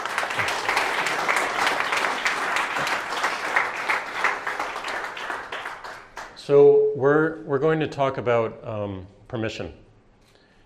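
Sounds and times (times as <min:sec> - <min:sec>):
audience round of applause: 0:00.0 - 0:06.4
speech: 0:06.5 - 0:09.8.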